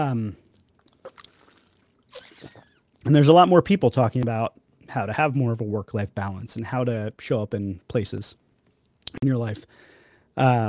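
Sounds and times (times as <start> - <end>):
speech: 0.0 - 0.5, 3.0 - 8.4, 9.1 - 10.6
sipping water: 0.4 - 3.0.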